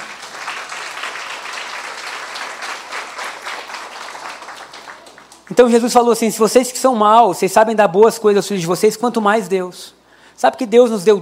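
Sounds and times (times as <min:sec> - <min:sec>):
audience applause: 0:00.0 - 0:05.6
speech: 0:05.5 - 0:11.2.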